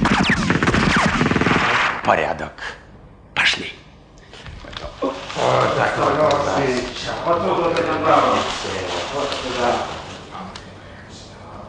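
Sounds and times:
gunshots: 0:00.0 - 0:02.1
speech: 0:02.1 - 0:02.8, 0:05.4 - 0:10.0.

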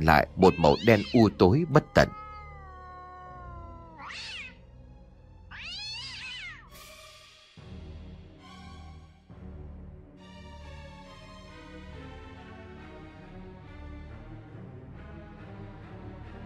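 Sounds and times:
speech: 0:00.0 - 0:02.2
cat meowing in a house: 0:00.0 - 0:04.6, 0:05.4 - 0:06.7.

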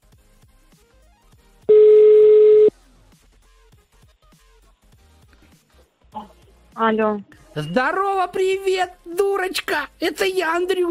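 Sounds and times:
steady telephone tone while calling a number: 0:01.7 - 0:02.7
speech: 0:06.8 - 0:10.8.

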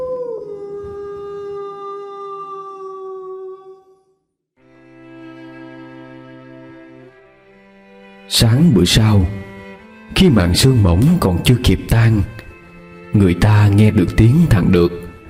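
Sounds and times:
village dogs howling at night: 0:00.0 - 0:03.8
speech: 0:08.3 - 0:09.4, 0:10.2 - 0:12.4, 0:13.2 - 0:15.0.

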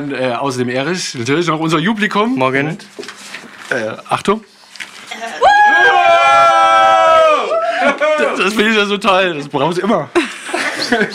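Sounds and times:
speech: 0:00.0 - 0:03.1, 0:03.7 - 0:04.5, 0:08.3 - 0:10.2, 0:10.8 - 0:11.1
crowd cheering: 0:05.1 - 0:08.6
laughter: 0:07.4 - 0:08.8, 0:10.2 - 0:11.1.

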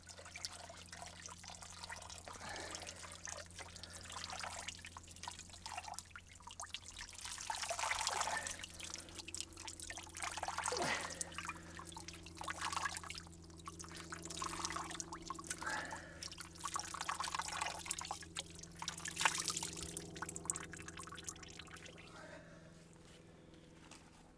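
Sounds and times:
water dripping off soaked goat skins for a bass drum: 0:00.0 - 0:22.1
low steady hum: 0:00.0 - 0:24.3.

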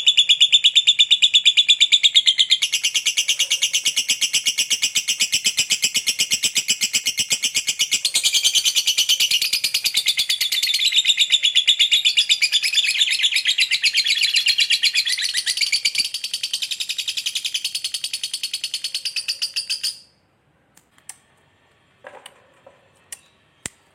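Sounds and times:
lovebird chirping: 0:00.0 - 0:20.2.

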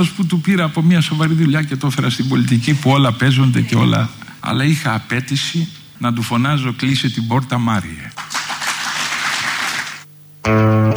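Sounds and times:
speech: 0:00.0 - 0:08.2, 0:10.4 - 0:10.8
audience applauding at a panel: 0:08.2 - 0:10.1.

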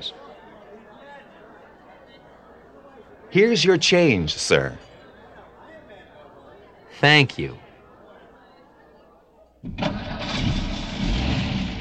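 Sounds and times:
speech: 0:03.3 - 0:04.9, 0:07.0 - 0:07.6, 0:09.6 - 0:10.1
car engine starting and idling on a windy night: 0:09.7 - 0:11.8.

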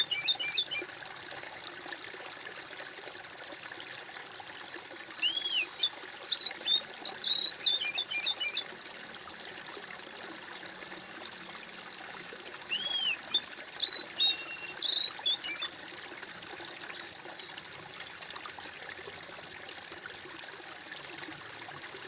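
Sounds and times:
bird whistled song: 0:00.0 - 0:00.8, 0:05.2 - 0:08.6, 0:12.7 - 0:15.7.

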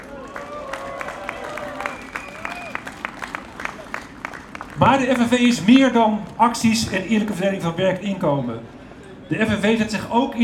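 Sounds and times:
scattered cheers and raised voices at a May Day union rally: 0:00.0 - 0:05.4
crowd clapping at a May Day union rally: 0:00.0 - 0:08.2
speech: 0:04.8 - 0:10.4.

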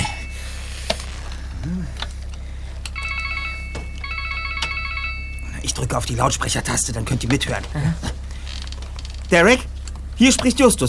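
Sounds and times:
steady low hum: 0:00.0 - 0:10.8
speech: 0:01.6 - 0:02.0, 0:05.6 - 0:08.2, 0:09.3 - 0:10.8
mobile phone bright electronic ringtone: 0:03.0 - 0:05.5.

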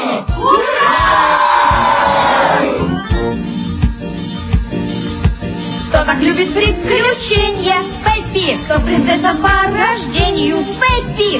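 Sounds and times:
crowd shouting hurrah in honour of Pippi Longstocking: 0:00.0 - 0:02.8
heavy thumping beats: 0:00.3 - 0:11.3
speech: 0:06.1 - 0:11.3.

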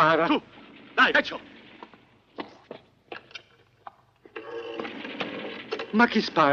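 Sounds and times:
speech: 0:00.0 - 0:01.5, 0:05.9 - 0:06.5
field telephone buzzing ring: 0:04.3 - 0:06.5.

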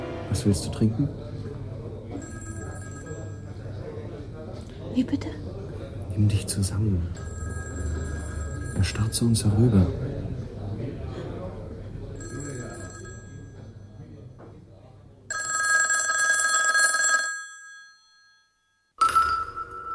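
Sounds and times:
speech: 0:00.3 - 0:01.3, 0:05.0 - 0:05.4, 0:06.2 - 0:07.3, 0:08.8 - 0:10.0
telephone ringing: 0:02.1 - 0:03.9, 0:07.2 - 0:09.6, 0:12.2 - 0:14.1, 0:15.3 - 0:19.9.

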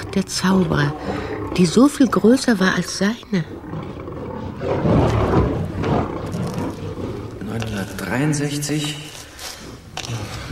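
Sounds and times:
lion roaring: 0:00.0 - 0:08.2
speech: 0:00.2 - 0:03.8, 0:08.1 - 0:09.1.

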